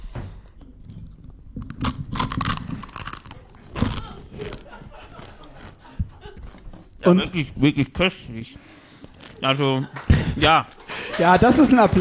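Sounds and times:
waffle being bitten and chewed: 0:01.1 - 0:07.0
laughter: 0:03.8 - 0:06.9, 0:09.4 - 0:11.9
speech: 0:07.0 - 0:08.8, 0:09.4 - 0:11.9.

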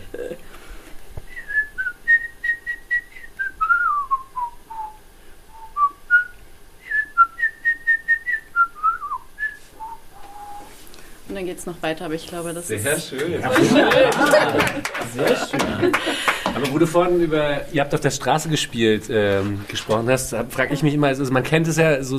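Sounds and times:
person whistling a birdlike melody: 0:01.3 - 0:10.8
speech: 0:11.4 - 0:22.1
laughter: 0:13.2 - 0:16.9.

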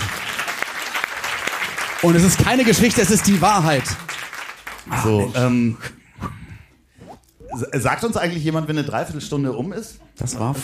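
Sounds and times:
audience applause: 0:00.0 - 0:05.3
speech: 0:02.0 - 0:04.0, 0:04.9 - 0:06.0, 0:07.6 - 0:10.6.

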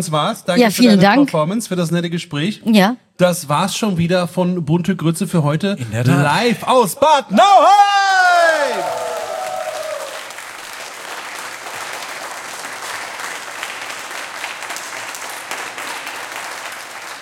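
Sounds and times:
speech: 0:00.0 - 0:08.9
live audience applause: 0:08.2 - 0:17.1.

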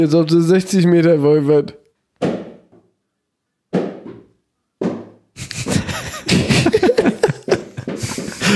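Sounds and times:
speech: 0:00.0 - 0:01.8
bouncy ball slammed onto the floor: 0:02.2 - 0:02.8, 0:03.7 - 0:05.2, 0:07.5 - 0:08.2
laughter: 0:05.4 - 0:08.5.

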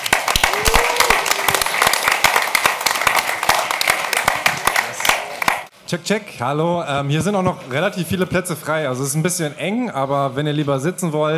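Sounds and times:
audience applause: 0:00.0 - 0:05.7
speech: 0:05.9 - 0:11.3.

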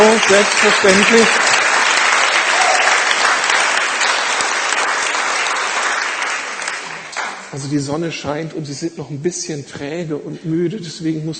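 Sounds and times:
audience applause: 0:00.0 - 0:07.6
speech: 0:00.3 - 0:01.5, 0:07.6 - 0:11.3.

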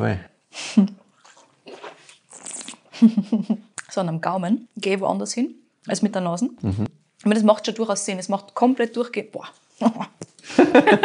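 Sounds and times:
speech: 0:00.0 - 0:01.0, 0:03.0 - 0:11.0
person slurping a sip of a drink during a tasting: 0:01.1 - 0:02.9
low voiced murmuring: 0:06.6 - 0:06.9
laughter: 0:10.5 - 0:11.0.

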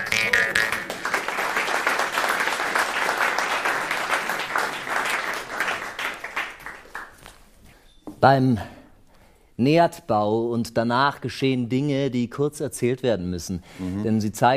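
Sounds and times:
audience applause: 0:00.0 - 0:07.2
speech: 0:08.2 - 0:08.7, 0:09.6 - 0:14.5.

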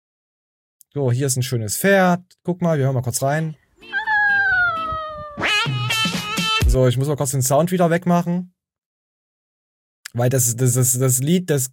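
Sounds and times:
speech: 0:00.9 - 0:04.0, 0:06.8 - 0:08.6, 0:10.1 - 0:11.7
cat meowing: 0:03.8 - 0:05.6.

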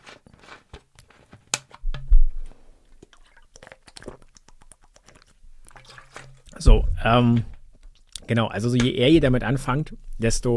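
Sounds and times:
quick sip of a drink: 0:02.8 - 0:06.6
speech: 0:06.6 - 0:07.5, 0:08.3 - 0:10.5.

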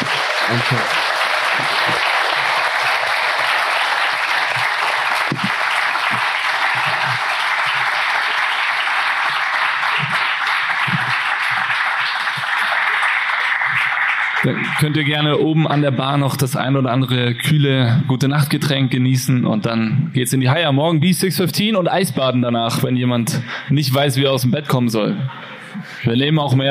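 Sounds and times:
audience applause: 0:00.0 - 0:15.8
speech: 0:00.5 - 0:02.1, 0:14.8 - 0:26.6.

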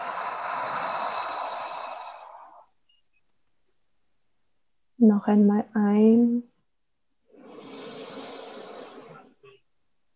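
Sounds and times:
deep breath through the mouth: 0:00.0 - 0:02.7, 0:07.3 - 0:09.6
speech: 0:05.0 - 0:06.5.

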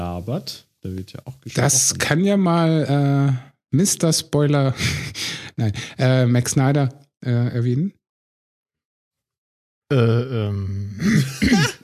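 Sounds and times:
speech: 0:00.2 - 0:08.0, 0:09.9 - 0:11.8
throat clearing: 0:09.9 - 0:11.8.

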